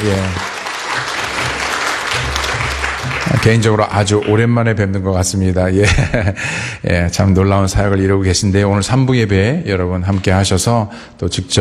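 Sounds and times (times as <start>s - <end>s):
speech: 0.0s - 0.5s, 3.3s - 11.5s
church congregation applauding during a Sunday service: 0.0s - 4.6s.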